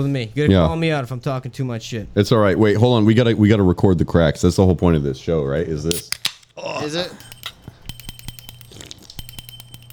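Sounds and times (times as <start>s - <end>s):
speech: 0.0s - 7.3s
small bell ringing: 7.1s - 9.9s.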